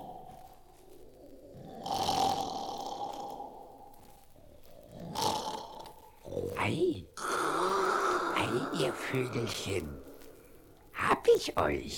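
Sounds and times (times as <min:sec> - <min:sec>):
loud snoring of sleeping giants: 0:01.4 - 0:04.0, 0:04.7 - 0:06.6, 0:07.2 - 0:09.1
speech: 0:09.0 - 0:10.1, 0:11.3 - 0:11.9.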